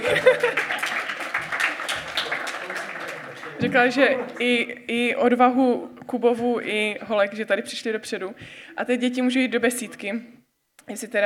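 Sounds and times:
laughter: 0.0s - 1.2s
audience applause: 0.0s - 4.5s
speech: 3.6s - 11.2s.

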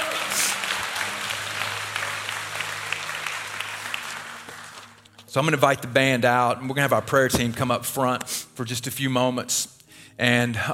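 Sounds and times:
audience clapping: 0.0s - 5.3s
speech: 5.3s - 10.7s.

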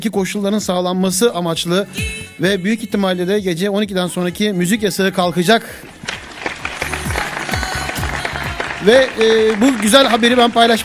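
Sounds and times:
speech: 0.0s - 6.2s, 8.8s - 10.8s
applause: 5.8s - 10.8s.

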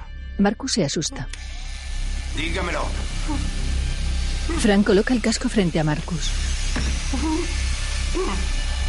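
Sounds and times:
speech: 0.4s - 1.8s, 2.4s - 3.7s, 4.5s - 8.6s
electric drill running: 1.3s - 8.8s.

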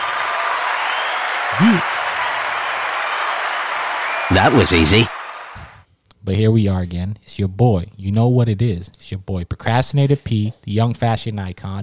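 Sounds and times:
applause: 0.0s - 5.8s
speech: 1.5s - 2.0s, 4.4s - 5.1s, 6.3s - 11.8s.

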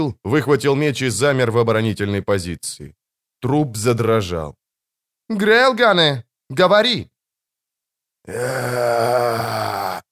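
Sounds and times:
speech: 0.0s - 4.6s, 5.3s - 7.1s, 8.2s - 10.1s
rising hoarse roar from the ferns: 8.3s - 10.1s.

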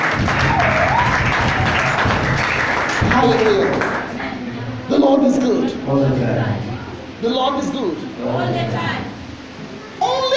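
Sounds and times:
audience clapping hands: 0.0s - 4.2s
rising whoop or cheer: 0.4s - 2.1s
speech: 5.1s - 9.2s.

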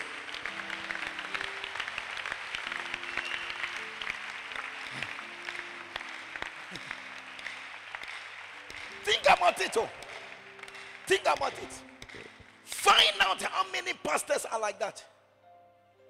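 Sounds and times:
crowd clapping: 0.0s - 13.7s
speech: 9.3s - 10.0s, 11.1s - 11.9s, 12.9s - 15.1s.

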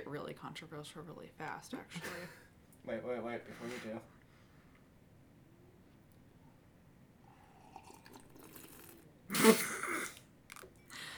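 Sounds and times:
speech: 0.1s - 4.2s
loud slurping sip of a drink: 7.5s - 10.7s.

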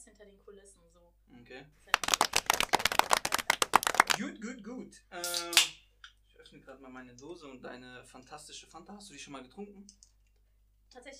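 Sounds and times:
speech: 0.1s - 2.8s, 4.2s - 5.8s, 6.4s - 10.1s, 10.9s - 11.1s
pompous hand clapping: 1.9s - 4.3s.

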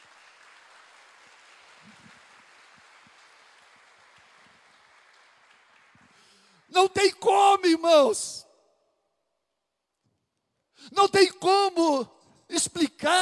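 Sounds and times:
audience applauding: 0.0s - 6.7s
speech: 6.7s - 8.4s, 10.9s - 13.1s.

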